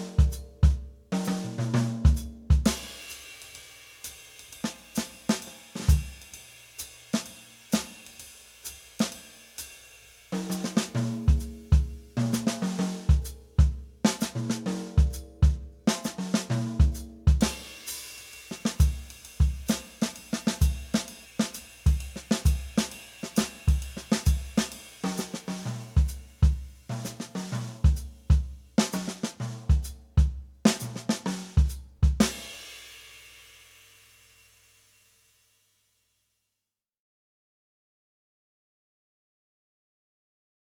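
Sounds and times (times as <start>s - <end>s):
bop drumming: 0.0s - 3.2s, 4.6s - 6.3s, 10.3s - 32.6s.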